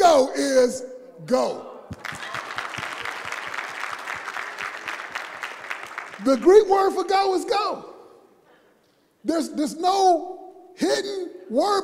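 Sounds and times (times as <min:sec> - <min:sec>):
speech: 0:00.2 - 0:02.3, 0:06.2 - 0:07.9, 0:09.2 - 0:11.8
audience clapping: 0:01.9 - 0:07.2.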